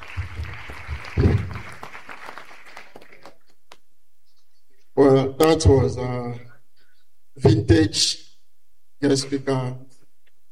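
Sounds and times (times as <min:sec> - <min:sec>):
audience applause: 0:00.0 - 0:03.8
speech: 0:05.5 - 0:06.5, 0:07.4 - 0:08.2, 0:09.0 - 0:09.8.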